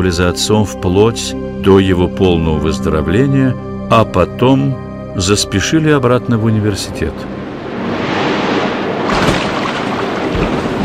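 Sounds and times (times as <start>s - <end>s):
speech: 0.0s - 7.4s
stormy sea waves: 7.3s - 10.8s.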